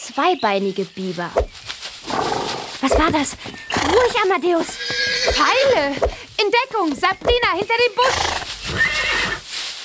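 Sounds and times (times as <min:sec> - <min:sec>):
speech: 0:00.1 - 0:02.2, 0:03.0 - 0:08.9
horse neighing: 0:02.0 - 0:06.2, 0:08.0 - 0:09.4.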